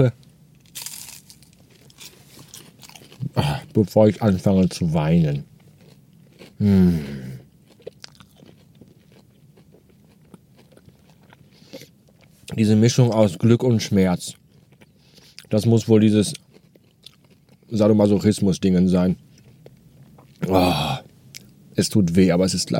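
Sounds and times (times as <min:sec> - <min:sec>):
speech: 0:00.0 - 0:00.2, 0:03.4 - 0:05.5, 0:06.6 - 0:07.2, 0:12.6 - 0:14.4, 0:15.5 - 0:16.4, 0:17.7 - 0:19.2, 0:20.5 - 0:21.0, 0:21.8 - 0:22.7
chewing crunchy chicken nuggets: 0:00.6 - 0:03.9, 0:05.4 - 0:06.6, 0:07.4 - 0:12.6, 0:14.2 - 0:21.6.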